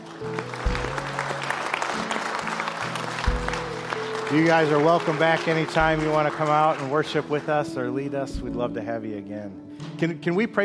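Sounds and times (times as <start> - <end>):
audience applause thanking guests at a worship gathering: 0.0 - 8.1
speech: 4.3 - 10.6.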